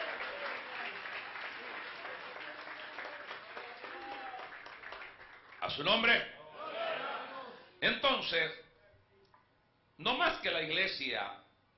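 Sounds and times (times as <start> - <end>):
audience applause: 0.0 - 5.7
speech: 5.7 - 6.4, 7.8 - 8.6, 10.0 - 11.4.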